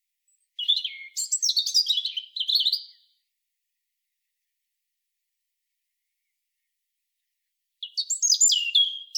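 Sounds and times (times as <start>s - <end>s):
European robin singing: 0.3s - 3.1s, 7.8s - 9.1s.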